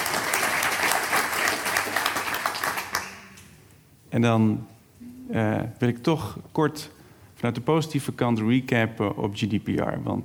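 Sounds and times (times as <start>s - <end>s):
audience applause: 0.0s - 3.2s
speech: 4.1s - 4.7s, 5.3s - 10.2s.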